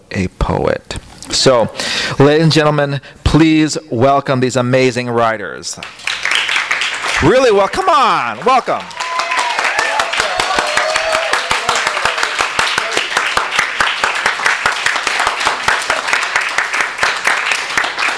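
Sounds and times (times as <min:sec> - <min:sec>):
speech: 0:00.1 - 0:06.1, 0:07.2 - 0:09.0
crowd applauding: 0:05.8 - 0:18.1.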